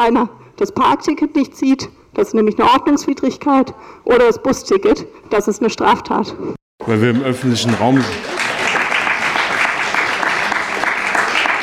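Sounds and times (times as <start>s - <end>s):
speech: 0.0s - 8.2s
applause: 7.2s - 11.6s.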